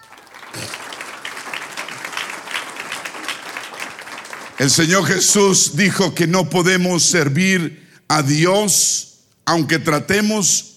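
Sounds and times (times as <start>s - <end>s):
audience applause: 0.0s - 5.5s
speech: 4.6s - 10.7s.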